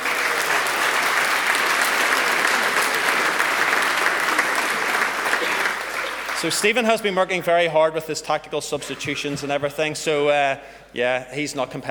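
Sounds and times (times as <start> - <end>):
audience applause: 0.0 - 6.9
speech: 6.4 - 11.8.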